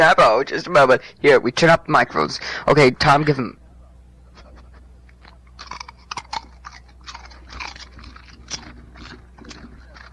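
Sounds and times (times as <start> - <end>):
speech: 0.0 - 3.6
dog crunching potato chips: 4.6 - 10.1.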